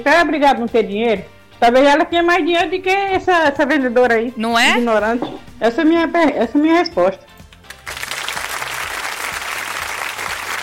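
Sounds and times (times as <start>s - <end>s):
speech: 0.0s - 7.3s
group applause: 7.5s - 10.6s.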